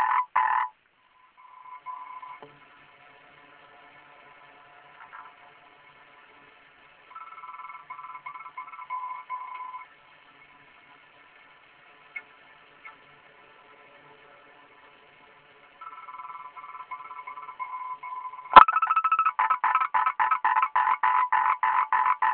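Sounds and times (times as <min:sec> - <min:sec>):
frog calling in rapid pulsed croaks: 0:00.0 - 0:00.7, 0:15.8 - 0:22.3.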